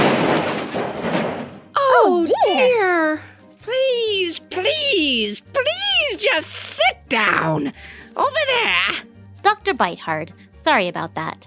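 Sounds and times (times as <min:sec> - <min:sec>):
glass display case crashing: 0:00.0 - 0:01.7
speech: 0:02.2 - 0:11.4.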